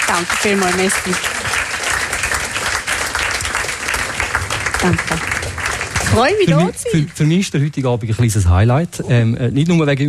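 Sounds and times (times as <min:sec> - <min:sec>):
audience applause: 0:00.0 - 0:08.4
speech: 0:00.1 - 0:01.6, 0:04.8 - 0:05.4, 0:06.1 - 0:10.0.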